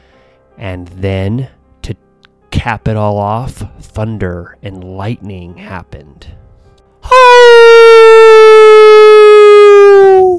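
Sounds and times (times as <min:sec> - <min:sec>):
speech: 0:00.6 - 0:02.0, 0:02.6 - 0:06.4, 0:08.6 - 0:10.3
wolf howling: 0:07.1 - 0:10.3.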